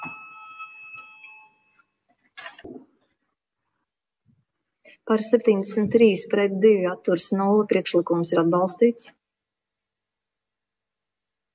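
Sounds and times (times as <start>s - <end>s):
parliament voting bell electronic tone: 0.0s - 1.9s
speech: 5.1s - 9.2s.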